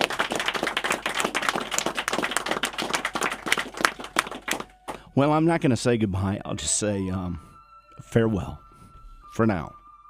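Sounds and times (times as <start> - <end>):
audience applause: 0.0 - 5.0
speech: 5.2 - 8.6, 9.3 - 9.8.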